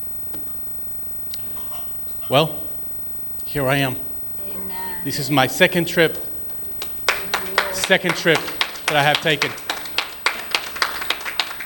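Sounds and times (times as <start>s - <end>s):
speech: 2.3s - 2.6s, 3.5s - 4.1s, 5.0s - 6.3s, 7.9s - 9.6s
crowd clapping in a steady rhythm: 6.2s - 11.6s.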